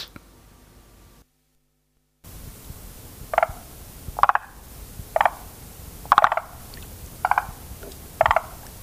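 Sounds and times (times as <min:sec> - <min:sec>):
forest green tree frog croaking: 0:03.3 - 0:08.8.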